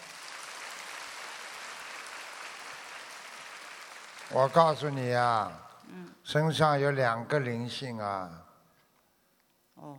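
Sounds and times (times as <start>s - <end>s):
applause: 0.0s - 5.7s
speech: 4.3s - 8.5s, 9.8s - 9.9s.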